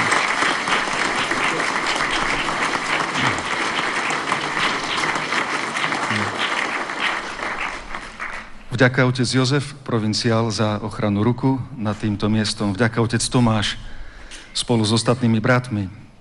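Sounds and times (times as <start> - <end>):
crowd applause: 0.0 - 8.6
speech: 8.8 - 14.0, 14.6 - 16.0.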